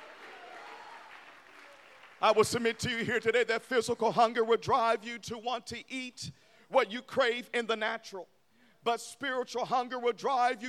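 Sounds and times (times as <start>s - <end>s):
audience clapping hands: 0.0s - 3.4s
speech: 2.2s - 10.6s.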